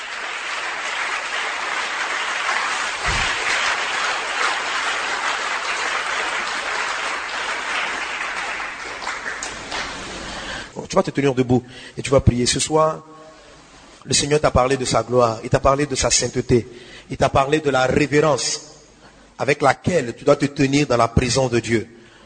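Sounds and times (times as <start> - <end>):
church congregation applauding: 0.0 - 10.7
speech: 10.9 - 13.1, 14.0 - 18.7, 19.4 - 22.0.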